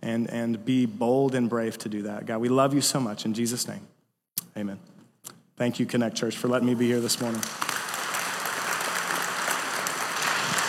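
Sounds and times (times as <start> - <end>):
speech: 0.2 - 4.0, 4.6 - 4.9, 5.6 - 7.8
church audience applause: 7.2 - 10.6.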